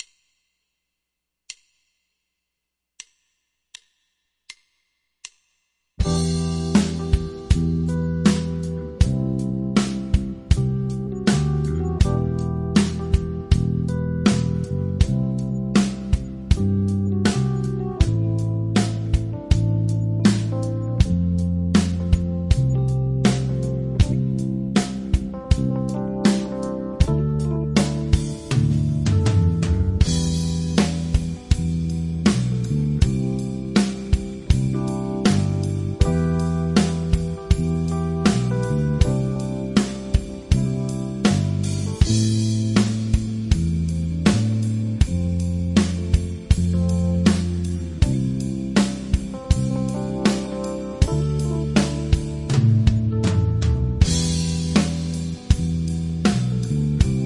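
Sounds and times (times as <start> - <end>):
slow ballad: 6.0 - 57.2.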